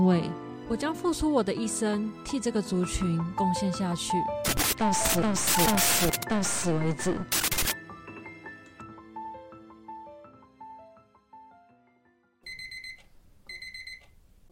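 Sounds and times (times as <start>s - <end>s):
speech: 0.0s - 7.5s
mobile phone alarm ringing: 12.5s - 14.5s.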